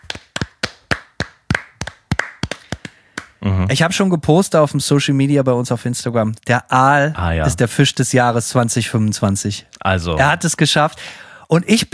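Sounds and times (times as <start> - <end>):
hand clapping: 0.0 - 3.4
speech: 3.4 - 11.9.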